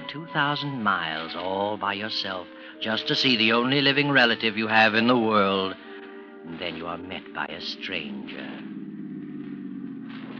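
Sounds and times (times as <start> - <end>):
speech: 0.1 - 8.6
car engine humming rolling up a driveway: 5.8 - 10.3.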